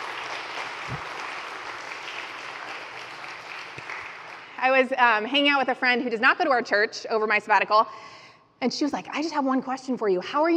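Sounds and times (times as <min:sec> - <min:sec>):
audience applause: 0:00.0 - 0:04.6
speech: 0:04.6 - 0:10.5.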